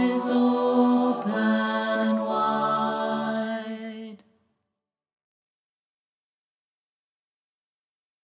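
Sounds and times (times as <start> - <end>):
tenor singing: 0.0 - 4.2.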